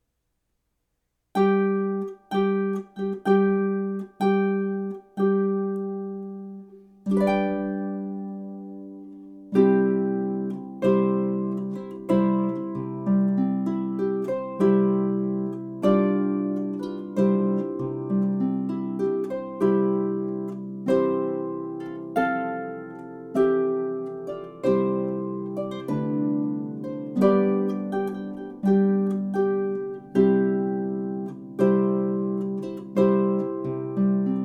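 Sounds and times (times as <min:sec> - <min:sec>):
music piece: 0:01.4 - 0:34.4.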